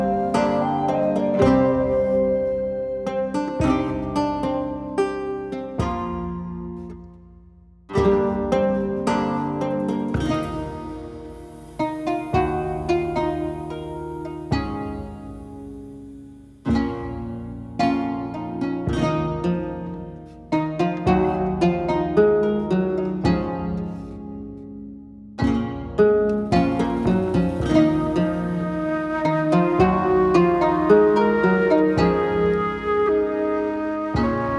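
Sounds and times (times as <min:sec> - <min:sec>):
background music: 0:00.0 - 0:07.1, 0:07.9 - 0:34.5.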